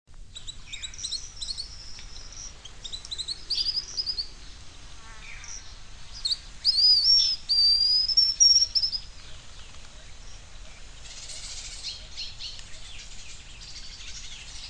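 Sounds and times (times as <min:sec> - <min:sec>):
bird singing high rapid twittering phrases with sharp chirps: 0:00.3 - 0:14.6.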